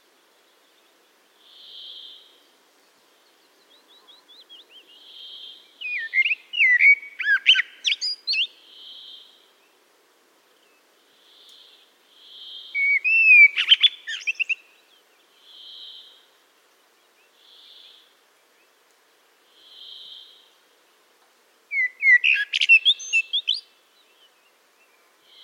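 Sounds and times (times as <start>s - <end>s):
Eurasian blackbird singing warbled phrases: 3.6s - 9.3s, 12.3s - 16.1s, 21.7s - 25.4s.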